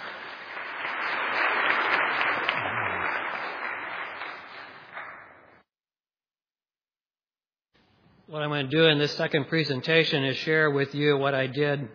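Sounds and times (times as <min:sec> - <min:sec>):
audience applause: 0:00.0 - 0:05.5
speech: 0:08.3 - 0:11.9.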